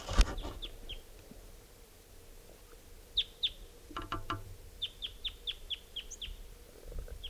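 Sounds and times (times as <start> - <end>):
wild male bird singing: 0.4 - 1.1, 2.6 - 6.5.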